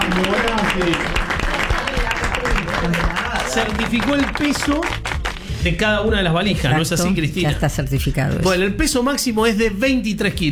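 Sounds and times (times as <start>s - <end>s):
studio audience applause: 0.0s - 5.6s
speech: 0.2s - 1.3s, 2.8s - 10.5s.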